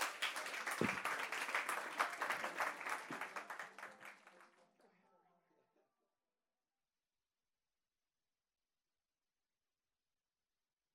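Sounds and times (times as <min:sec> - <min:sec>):
audience applause: 0:00.0 - 0:04.8
voices in the crowd: 0:00.1 - 0:04.3.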